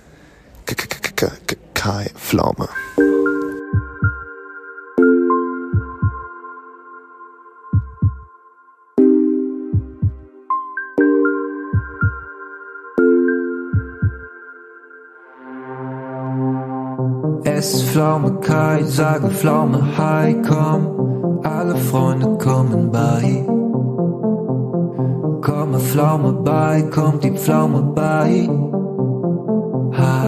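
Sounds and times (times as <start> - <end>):
speech: 1.2 - 3.1, 18.0 - 23.6, 25.5 - 28.8
played song recording: 2.4 - 30.2.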